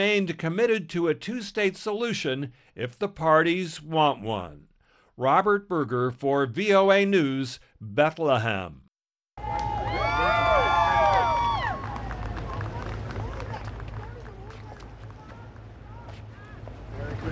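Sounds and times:
speech: 0:00.0 - 0:08.8
crowd cheering: 0:09.4 - 0:17.2.

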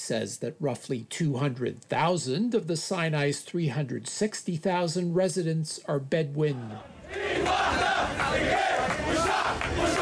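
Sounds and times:
speech: 0:00.0 - 0:10.0
crowd of government supporters chanting slogans in Cairo: 0:06.5 - 0:10.0.

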